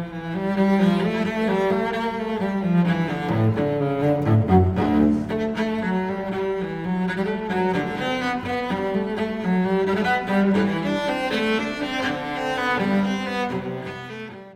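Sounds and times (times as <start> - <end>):
cello suite movement: 0.0 - 14.5.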